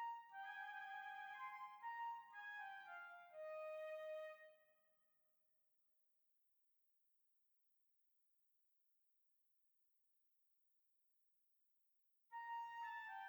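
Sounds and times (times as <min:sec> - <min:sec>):
classical flute: 0:00.0 - 0:04.5, 0:12.4 - 0:13.2.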